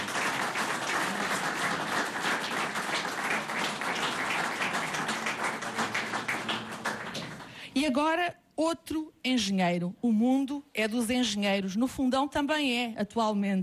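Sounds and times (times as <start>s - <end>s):
audience applause: 0.0s - 7.6s
speech: 7.8s - 13.6s.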